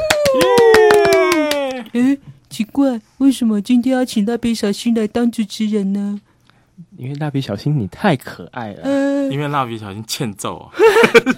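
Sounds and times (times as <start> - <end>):
rhythmic hand claps welcoming listeners to a radio show: 0.0 - 1.9
speech: 2.0 - 6.3, 7.0 - 11.3.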